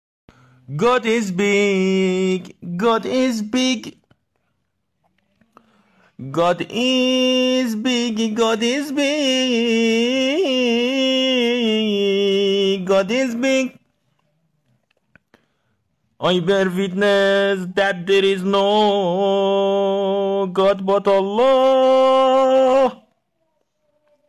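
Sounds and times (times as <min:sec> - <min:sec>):
Azan call to prayer in English: 0:00.7 - 0:04.2, 0:06.2 - 0:13.9, 0:16.2 - 0:23.2.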